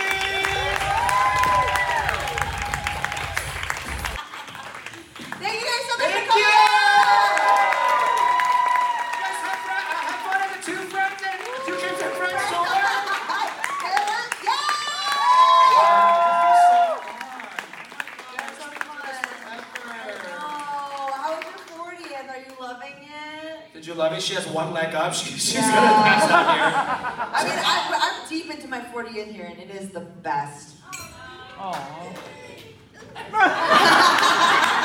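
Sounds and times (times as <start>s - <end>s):
audience whooping and cheering: 0.0s - 4.7s, 6.0s - 17.8s
live audience clapping at a show in Philly: 0.0s - 22.2s, 33.6s - 34.8s
laughter: 11.7s - 13.9s, 25.6s - 28.1s, 32.9s - 34.8s
speech: 24.2s - 27.9s, 29.0s - 30.7s, 31.6s - 32.7s.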